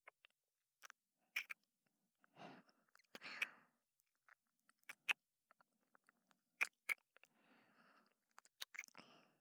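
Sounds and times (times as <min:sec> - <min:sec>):
gentle kiss: 0:01.4 - 0:01.6, 0:04.9 - 0:05.2, 0:06.6 - 0:07.0, 0:08.4 - 0:09.0.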